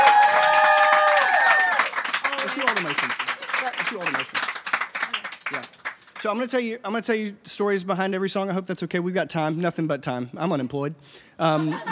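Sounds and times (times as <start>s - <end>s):
crowd cheering and whooping: 0.0s - 2.6s
applause: 0.0s - 6.4s
speech: 3.9s - 4.4s, 5.5s - 11.9s
laughter: 11.4s - 11.9s.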